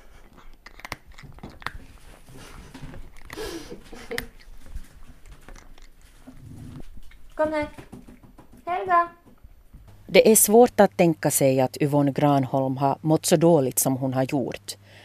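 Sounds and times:
pet crunching dry kibble: 0:00.0 - 0:07.6
speech: 0:07.4 - 0:07.8, 0:08.8 - 0:09.2, 0:10.1 - 0:15.0.

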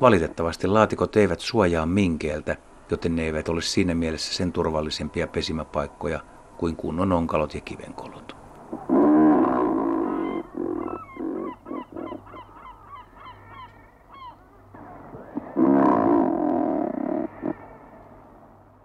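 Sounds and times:
speech: 0:00.0 - 0:08.9
razorbill growling calls: 0:08.7 - 0:18.6.

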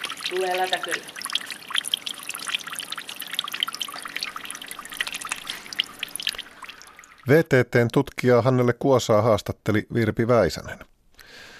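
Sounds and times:
water trickling through concrete: 0:00.0 - 0:08.2
speech: 0:00.3 - 0:01.2, 0:07.2 - 0:11.5.

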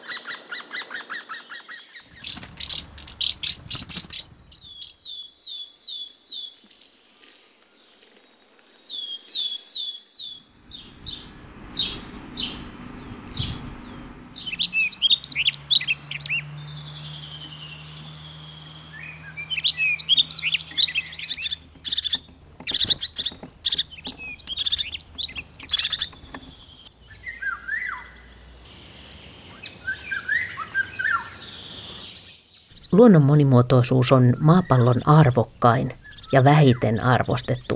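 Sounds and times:
birds singing: 0:00.0 - 0:37.7
low rumbles: 0:02.1 - 0:05.0, 0:10.4 - 0:28.6, 0:32.7 - 0:37.7
low steady hum: 0:10.3 - 0:29.8, 0:32.7 - 0:37.7
speech: 0:33.0 - 0:37.7.

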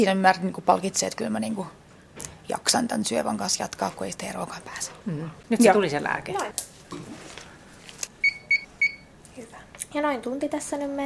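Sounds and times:
speech: 0:00.0 - 0:07.0, 0:09.9 - 0:11.0
IV infusion pump beeping: 0:08.2 - 0:09.1.

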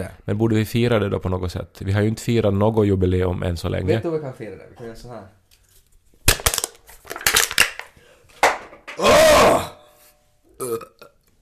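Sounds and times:
speech: 0:00.0 - 0:05.4, 0:09.0 - 0:09.7, 0:10.6 - 0:11.0
drink can crushed against forehead: 0:06.2 - 0:09.0
long loud rumbling burp: 0:09.0 - 0:09.9, 0:10.5 - 0:11.3.

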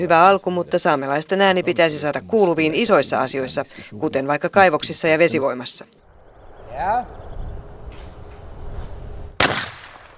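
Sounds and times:
speech: 0:00.0 - 0:06.0, 0:06.8 - 0:07.2
gunshot at hunters' shooting practice: 0:09.4 - 0:10.1.

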